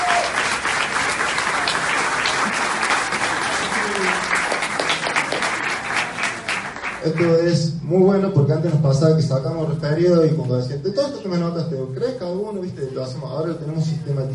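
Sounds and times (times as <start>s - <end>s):
audience applause at a business presentation: 0.0s - 7.4s
speech: 7.0s - 14.3s.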